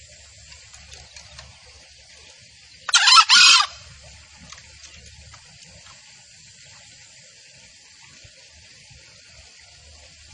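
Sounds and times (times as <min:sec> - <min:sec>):
junglefowl crow: 0:02.9 - 0:03.9.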